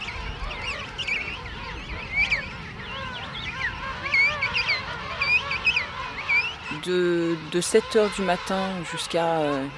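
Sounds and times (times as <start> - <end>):
noisy penguin colony calling: 0.1 - 9.7
speech: 6.8 - 9.7.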